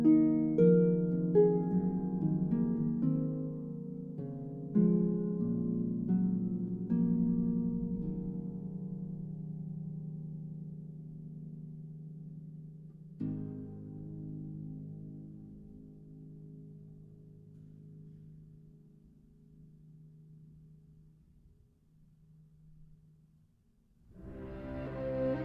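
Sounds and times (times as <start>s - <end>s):
harp concerto lullaby: 0.0s - 18.7s, 24.2s - 25.4s.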